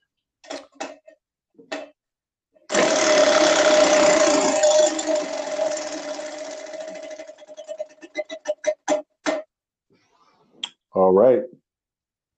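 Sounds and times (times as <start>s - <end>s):
prize wheel spinning: 2.7s - 8.8s.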